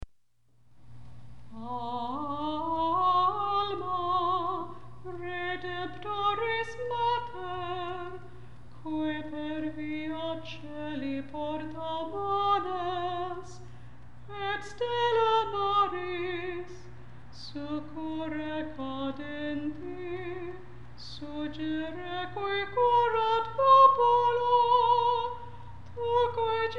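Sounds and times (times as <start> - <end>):
Marian antiphon chant: 1.5 - 26.7.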